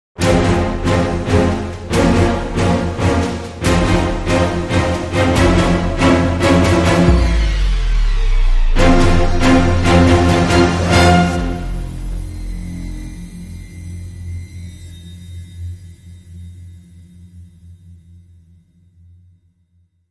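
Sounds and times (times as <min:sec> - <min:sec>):
dramatic sting: 0:00.2 - 0:14.8.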